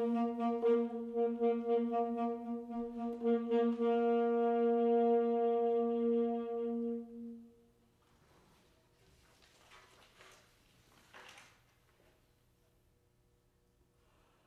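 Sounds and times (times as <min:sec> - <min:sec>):
baroque dance piece: 0:00.0 - 0:07.6.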